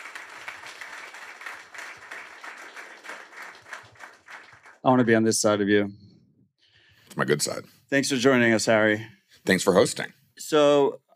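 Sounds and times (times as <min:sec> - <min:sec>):
audience applause: 0:00.0 - 0:04.8
speech: 0:04.8 - 0:06.0, 0:07.2 - 0:11.1.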